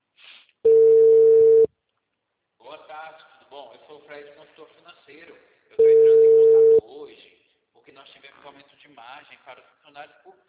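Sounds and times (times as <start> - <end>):
unanswered telephone ringback tone: 0.7 - 1.7, 5.8 - 6.8
speech: 3.1 - 6.3, 6.9 - 10.4.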